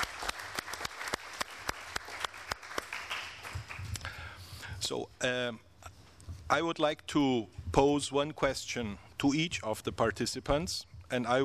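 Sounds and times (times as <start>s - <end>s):
audience applause: 0.0s - 4.0s
speech: 4.9s - 5.7s, 6.5s - 11.4s.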